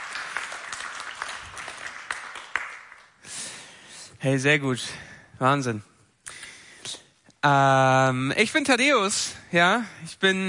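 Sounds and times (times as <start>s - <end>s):
audience applause for the band: 0.0s - 3.2s
speech: 4.2s - 5.9s, 7.4s - 10.4s.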